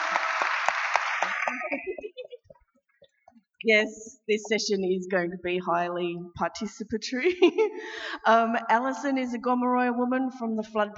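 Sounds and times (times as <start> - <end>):
audience applause: 0.0 - 2.0
laughter: 1.1 - 2.7
speech: 1.5 - 2.2, 3.6 - 10.9.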